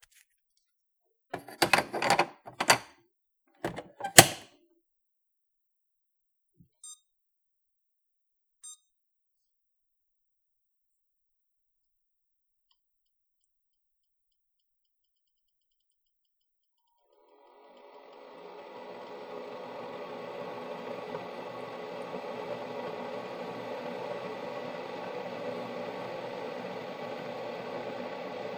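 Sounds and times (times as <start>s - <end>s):
coffee machine: 1.4s - 2.9s, 3.6s - 4.5s, 17.2s - 28.5s.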